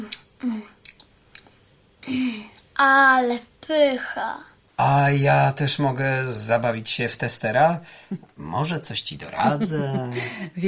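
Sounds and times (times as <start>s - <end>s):
speech: 0.0s - 0.7s, 2.8s - 10.6s
soft wet chewing of poppy seed filling: 0.8s - 1.6s.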